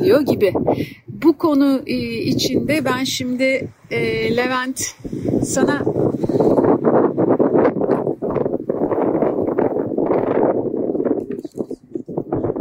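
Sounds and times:
speech: 0.0 - 6.5
wind buffeting a microphone outdoors in nature: 0.0 - 12.5.

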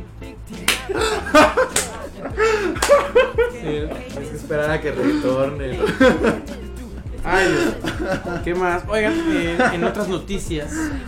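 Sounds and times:
slapping sound of clapping with buttocks: 0.6 - 2.1, 2.8 - 3.2
laughter: 0.7 - 11.0
speech: 3.6 - 6.6, 7.2 - 11.0.

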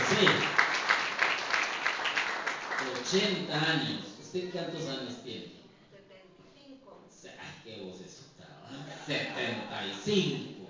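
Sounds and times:
audience applause for an 80-year-old singer: 0.0 - 3.2
speech: 0.2 - 0.5, 3.1 - 5.6, 9.0 - 10.6.

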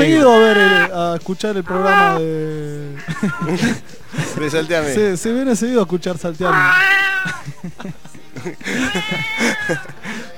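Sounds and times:
cat meowing: 0.0 - 1.0, 1.6 - 2.3, 2.9 - 3.7, 6.4 - 7.5, 8.7 - 10.0
voices murmuring: 0.0 - 10.3
speech: 0.2 - 10.0
laughter: 2.8 - 5.2, 6.4 - 10.3.

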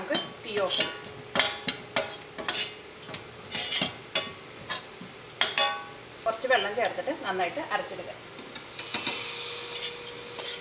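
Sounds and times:
spoon scraping a pan stirring chillies for a Karupp dish: 0.1 - 5.9, 8.6 - 10.5
speech: 0.5 - 1.0, 6.6 - 8.4.

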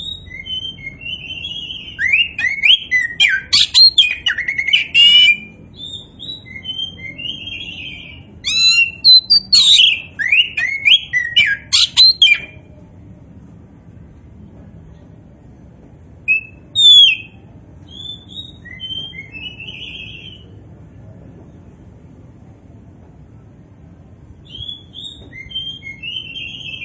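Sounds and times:
oriental magpie-robin whistled song: 0.0 - 12.6, 16.3 - 20.5, 24.4 - 26.8.

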